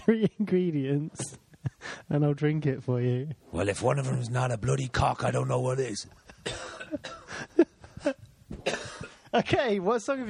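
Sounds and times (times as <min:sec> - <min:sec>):
speech: 0:00.1 - 0:10.2
pipe smoker coughing: 0:06.4 - 0:07.5, 0:08.5 - 0:09.3
pipe smoker clearing throat: 0:08.5 - 0:09.2.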